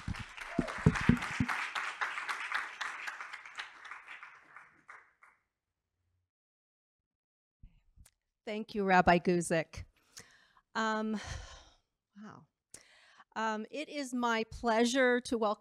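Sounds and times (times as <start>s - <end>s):
crowd round of applause: 0.0s - 5.0s
speech: 8.5s - 9.9s, 10.8s - 11.4s, 13.4s - 15.5s.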